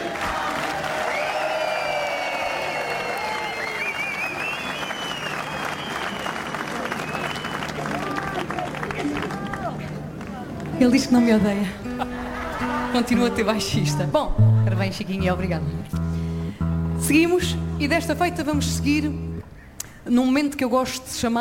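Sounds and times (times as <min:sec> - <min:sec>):
audience applause: 0:00.0 - 0:10.8, 0:12.0 - 0:13.4
speech: 0:10.8 - 0:11.9, 0:13.0 - 0:16.0, 0:17.1 - 0:19.3, 0:20.1 - 0:21.3
laughter: 0:11.6 - 0:13.8.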